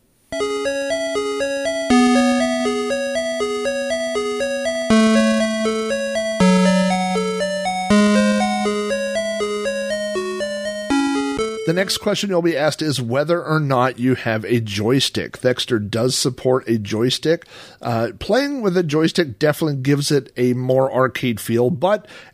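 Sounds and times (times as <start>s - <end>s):
retro computer game music from a Tandy sound chip: 0.3s - 12.2s
speech: 11.7s - 22.3s.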